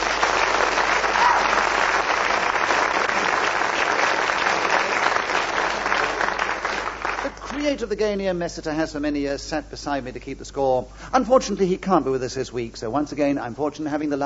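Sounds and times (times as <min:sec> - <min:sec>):
studio audience applauding Just a Minute panellists: 0:00.0 - 0:07.6
speech: 0:07.7 - 0:14.2.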